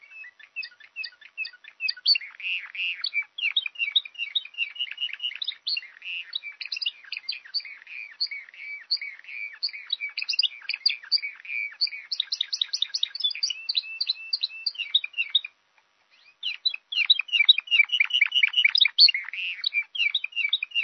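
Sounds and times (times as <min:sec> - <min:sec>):
songbird chirping and twittering: 0:00.0 - 0:20.8.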